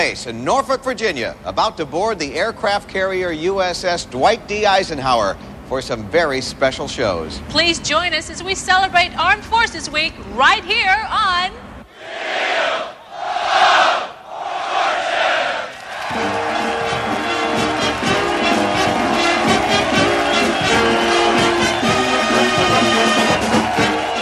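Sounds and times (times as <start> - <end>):
speech: 0.0 - 11.6
crowd of sailors, pilots and technical staff shouting aboard aircraft carrier Eisenhower: 11.9 - 24.1.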